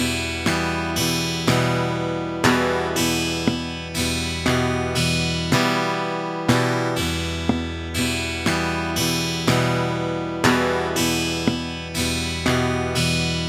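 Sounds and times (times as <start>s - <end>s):
thumb percussion: 0.0s - 13.4s.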